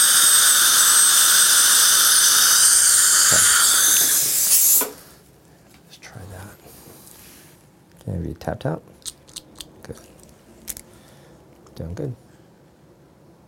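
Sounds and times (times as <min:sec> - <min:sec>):
high-pitched dental drill with diamond bur whining: 0:00.0 - 0:05.0
speech: 0:08.4 - 0:09.0, 0:11.8 - 0:12.2.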